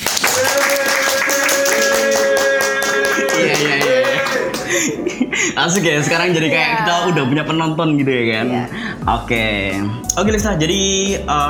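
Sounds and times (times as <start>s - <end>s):
hand clapping: 0.0s - 5.0s
laughter: 0.5s - 7.7s
speech: 5.6s - 11.4s.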